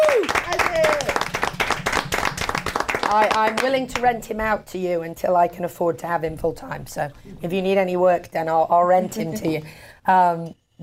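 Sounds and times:
high whooping cheer: 0:00.0 - 0:01.2
round of applause: 0:00.0 - 0:03.8
speech: 0:03.2 - 0:10.8.

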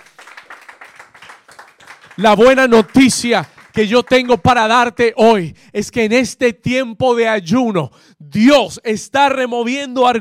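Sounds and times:
audience applause: 0:00.0 - 0:04.5
speech: 0:02.2 - 0:10.1.

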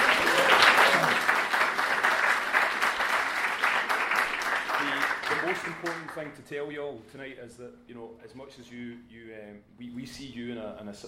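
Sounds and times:
audience applause welcoming a visual effects supervisor onto the stage: 0:00.0 - 0:06.2
speech: 0:05.8 - 0:11.0.

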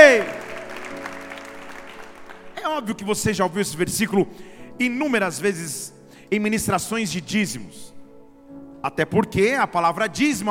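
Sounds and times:
audience applause: 0:00.0 - 0:02.6
sustained keyboard chord: 0:00.0 - 0:10.4
speech: 0:02.8 - 0:08.0, 0:08.8 - 0:10.4.

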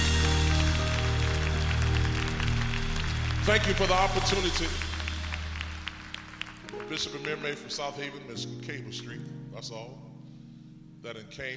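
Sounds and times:
audience clapping hands: 0:00.0 - 0:08.0
speech: 0:03.4 - 0:04.9, 0:06.9 - 0:10.1, 0:11.0 - 0:11.5.

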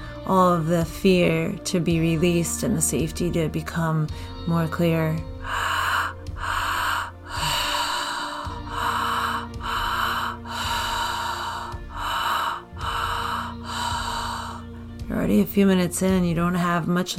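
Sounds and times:
sustained tonal background: 0:00.2 - 0:17.1
speech: 0:00.3 - 0:05.7, 0:15.3 - 0:17.1
deep belly breathing in a guided breathwork exercise: 0:04.0 - 0:16.6.

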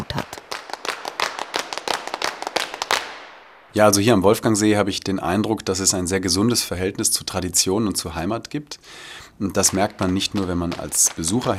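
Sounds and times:
rhythmic group clapping in a tavern: 0:00.0 - 0:03.5, 0:09.6 - 0:11.5
speech: 0:03.7 - 0:11.5.

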